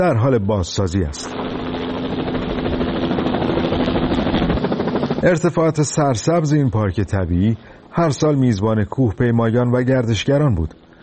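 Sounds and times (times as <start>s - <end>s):
speech: 0.0s - 1.4s, 5.2s - 10.8s
helicopter engine and rotor drone: 0.0s - 11.0s.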